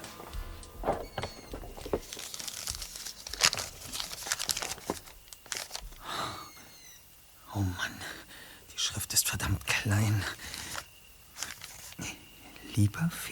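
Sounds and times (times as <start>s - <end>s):
thin rolled-up paper crinkling as it is unrolled: 0.4s - 6.0s, 9.4s - 12.1s
speech: 12.8s - 13.3s.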